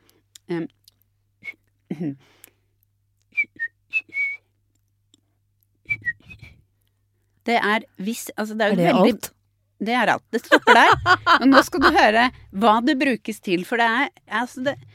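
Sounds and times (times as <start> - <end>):
speech: 0.5 - 0.8, 2.0 - 2.5, 7.4 - 14.9
person whistling a family whistle signal melody: 3.3 - 4.4, 5.9 - 6.6
laughter: 10.4 - 12.4.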